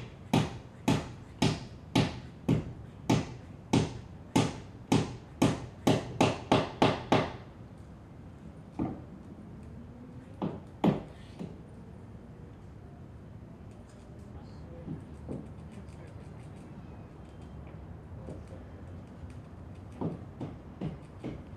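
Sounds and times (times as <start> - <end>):
sounds outside the window: 0.0 - 21.5
hammer knocking indoors: 0.3 - 7.4, 19.9 - 21.5.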